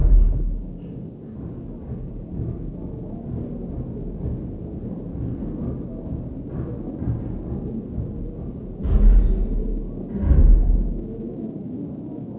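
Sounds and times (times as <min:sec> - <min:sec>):
old building noise: 0:00.0 - 0:00.9, 0:08.8 - 0:11.3.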